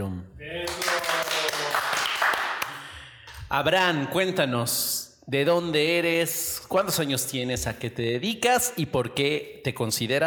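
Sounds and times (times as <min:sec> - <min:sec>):
audience applause for a guest: 0:00.6 - 0:02.9
speech: 0:03.5 - 0:10.2.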